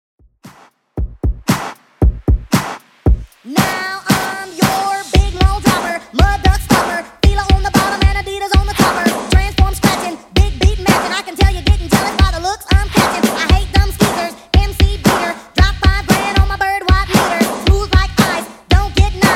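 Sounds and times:
80s old school drum beat: 0.2 - 19.3.

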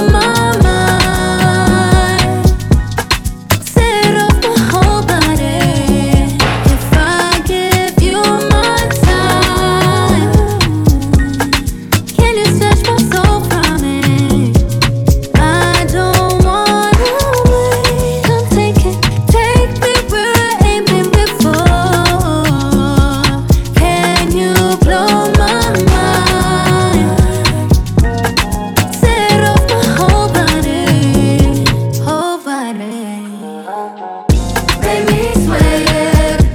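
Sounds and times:
afro drum beat: 0.0 - 32.1, 34.3 - 36.5.

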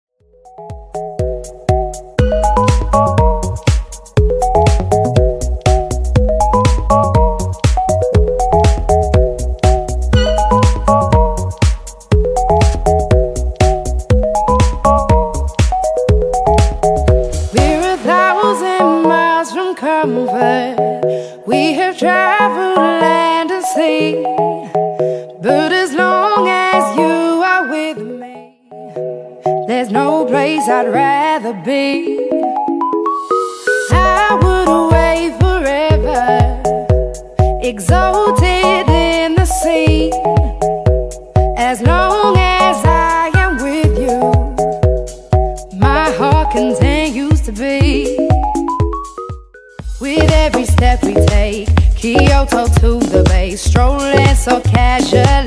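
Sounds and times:
Top40 pop music: 0.6 - 55.4.

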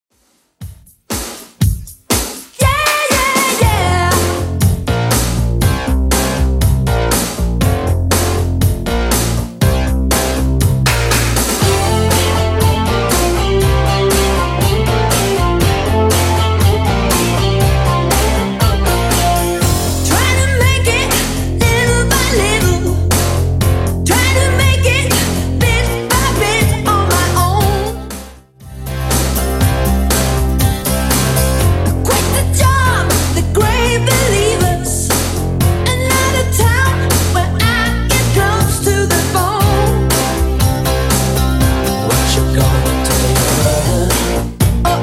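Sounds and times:
80s drum machine beat at 120 bpm: 0.1 - 28.2, 28.8 - 45.0.

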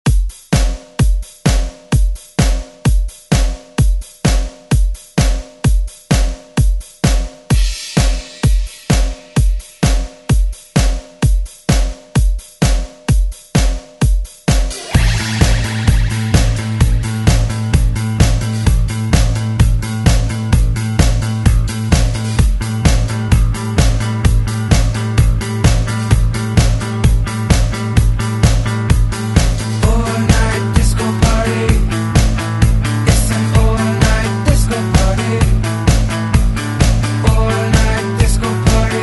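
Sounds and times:
disco music: 0.0 - 39.0.

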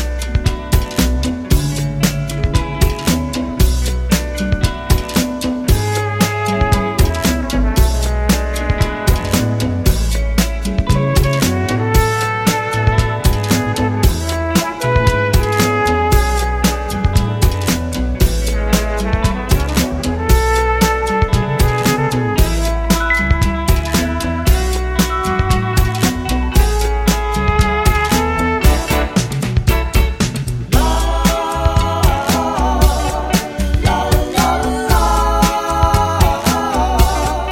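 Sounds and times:
70s drum machine beat at 115 BPM: 0.0 - 37.4.

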